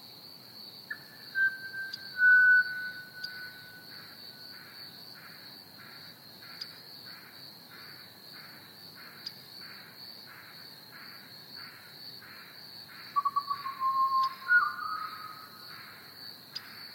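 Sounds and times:
Pied Butcherbird whistling: 1.4s - 3.6s, 13.2s - 15.4s.

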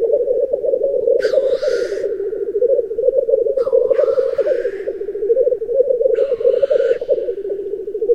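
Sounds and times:
black grouse low bubbling cooing: 0.0s - 8.1s.

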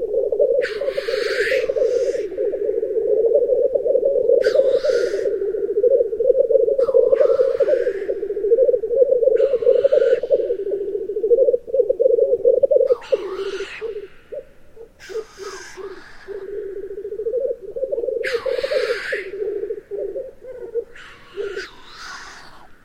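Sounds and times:
black grouse: 0.0s - 22.7s.

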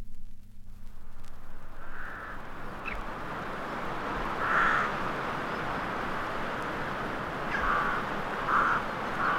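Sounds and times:
crow cawing: 1.8s - 3.1s, 4.0s - 9.3s.

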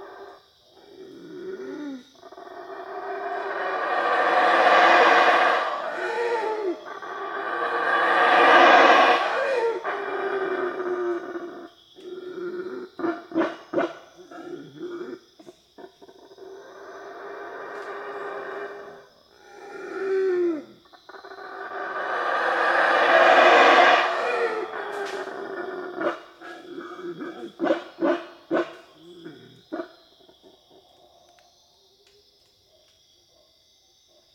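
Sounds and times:
black howler monkey calling: 0.0s - 15.2s, 15.8s - 31.0s.

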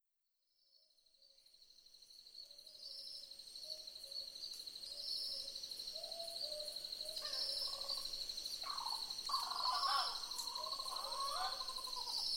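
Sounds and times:
Southern boobook owls hooting in a chorus: 8.6s - 12.2s.

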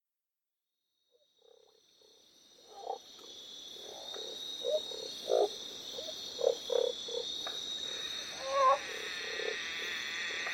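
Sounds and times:
Northern barred frog croaking: 1.4s - 3.1s, 3.8s - 10.5s.

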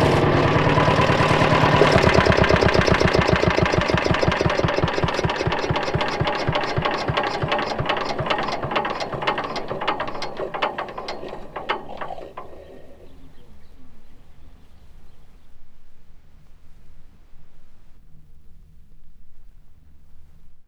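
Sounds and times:
single stroke petrol engine starting: 0.0s - 14.4s.

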